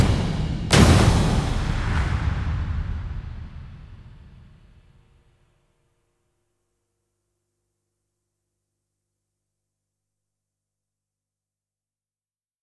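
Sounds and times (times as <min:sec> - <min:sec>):
drums: 0:00.0 - 0:05.0.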